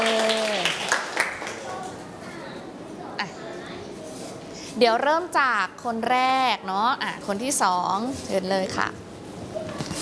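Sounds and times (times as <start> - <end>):
students clapping for classmates: 0.0 - 2.0
speech: 4.8 - 9.0.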